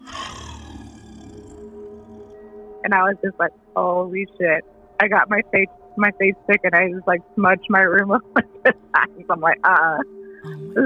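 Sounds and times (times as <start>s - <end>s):
menacing demon-like growl: 0.0s - 2.9s, 10.4s - 10.8s
speech: 2.8s - 10.8s.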